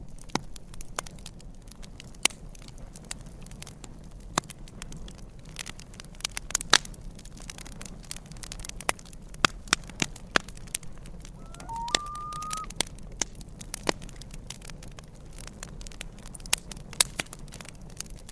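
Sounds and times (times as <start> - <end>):
campfire crackling: 0.0 - 18.3
loon call: 11.4 - 12.7.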